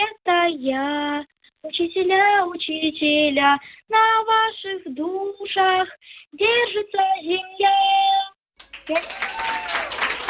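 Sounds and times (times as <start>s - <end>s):
speech: 0.6s - 8.3s, 8.9s - 10.2s
audience applause: 8.6s - 10.2s.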